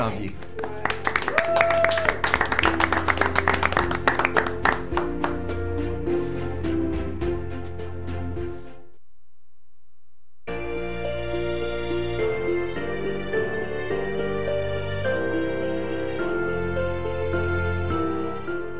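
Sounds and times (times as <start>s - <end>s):
speech: 0.0s - 0.5s
studio audience applause: 0.0s - 5.4s
music: 0.0s - 9.0s, 10.5s - 18.7s.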